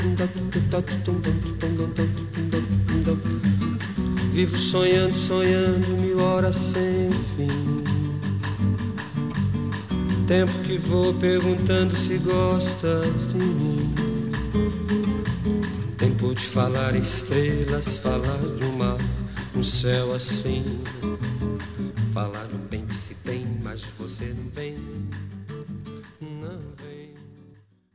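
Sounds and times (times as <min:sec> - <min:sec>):
Brazilian percussion: 0:00.0 - 0:27.8.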